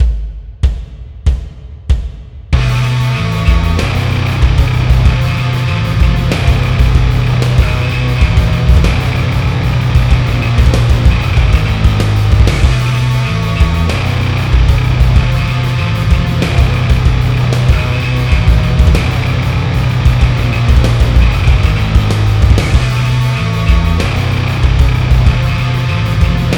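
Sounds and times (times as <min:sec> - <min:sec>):
musical riff: 0:02.6 - 0:26.5.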